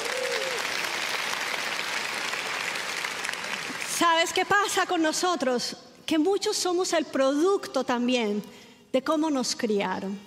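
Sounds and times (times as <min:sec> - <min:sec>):
crowd applauding: 0:00.0 - 0:04.0
speech: 0:04.0 - 0:10.2.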